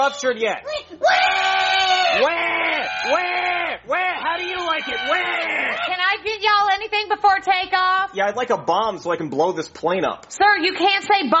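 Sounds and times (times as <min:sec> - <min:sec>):
speech: 0:00.0 - 0:01.2, 0:02.1 - 0:11.3
baby crying loudly: 0:01.0 - 0:06.1.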